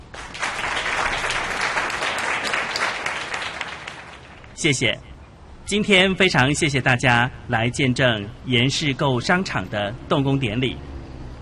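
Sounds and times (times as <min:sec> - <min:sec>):
audience clapping: 0:00.0 - 0:04.6
speech: 0:04.6 - 0:05.1, 0:05.7 - 0:10.9.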